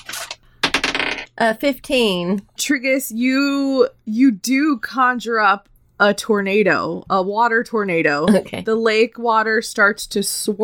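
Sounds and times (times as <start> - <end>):
dice being rolled: 0.0 - 1.3
speech: 1.4 - 10.6.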